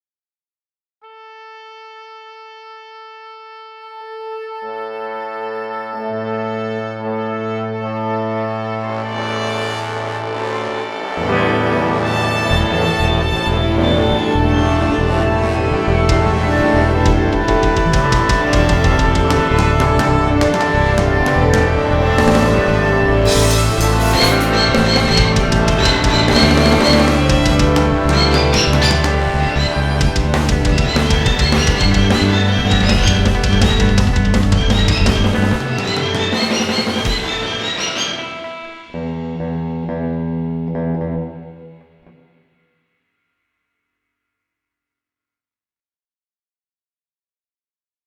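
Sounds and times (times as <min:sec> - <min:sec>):
instrument tuning: 0:06.5 - 0:42.4.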